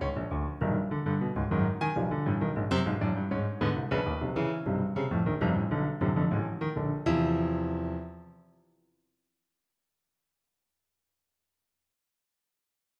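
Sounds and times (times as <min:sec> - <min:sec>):
short piano pieces: 0:00.0 - 0:08.5.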